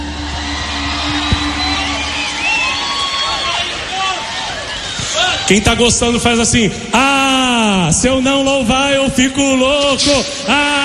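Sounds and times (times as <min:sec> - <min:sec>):
large audience applauding: 0:00.0 - 0:05.7
speech: 0:05.5 - 0:07.1, 0:07.7 - 0:10.8.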